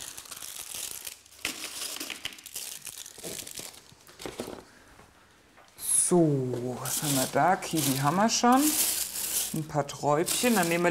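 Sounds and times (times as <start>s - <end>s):
packaging crinkling and tearing as animals unwrap packaged fruit: 0.0s - 4.5s, 6.8s - 10.8s
speech: 6.1s - 8.9s, 9.5s - 10.8s.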